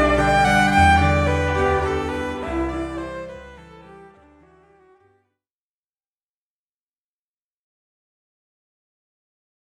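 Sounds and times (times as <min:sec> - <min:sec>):
keys playing wedding ceremony music: 0:00.0 - 0:05.1
violin playing wedding ceremony music: 0:00.0 - 0:05.2.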